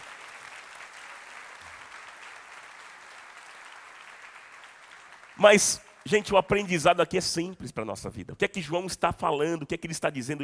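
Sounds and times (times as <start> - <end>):
audience applause: 0.0 - 6.3
speech: 5.4 - 10.4.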